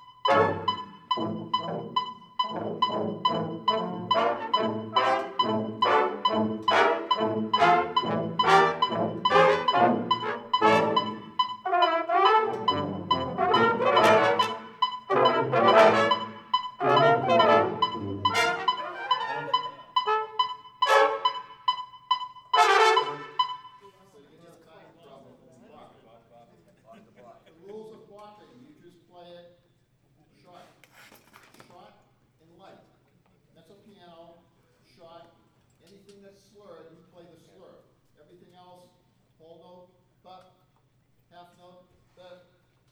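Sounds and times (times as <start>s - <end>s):
bopping brass practice: 0.2s - 23.8s.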